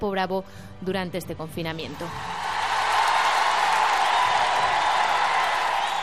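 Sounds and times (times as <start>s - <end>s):
speech: 0.0s - 2.4s
audience ovation with applause: 2.1s - 6.0s.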